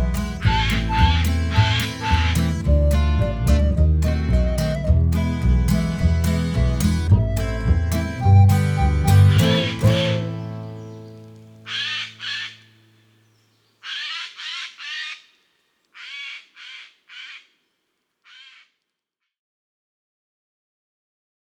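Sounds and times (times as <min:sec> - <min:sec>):
instrumental music: 0:00.0 - 0:11.6.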